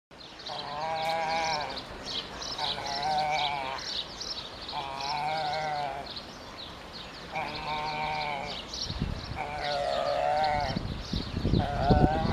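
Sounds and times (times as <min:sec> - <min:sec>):
pelican giving hoarse bleating harmonic calls: 0:00.5 - 0:01.9, 0:02.6 - 0:04.0, 0:04.7 - 0:06.1, 0:07.3 - 0:08.7, 0:09.3 - 0:10.8, 0:11.6 - 0:12.3.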